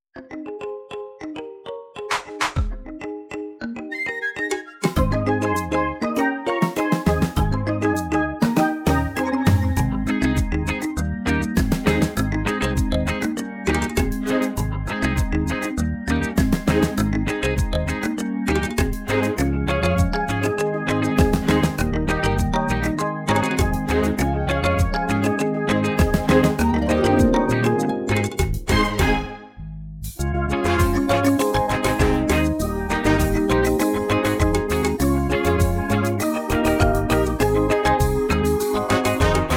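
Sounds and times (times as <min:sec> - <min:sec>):
instrumental music without choir: 0:00.2 - 0:39.5.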